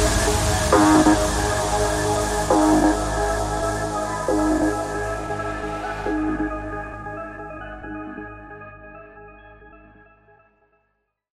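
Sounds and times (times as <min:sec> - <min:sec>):
epic mashup music: 0:00.0 - 0:08.5.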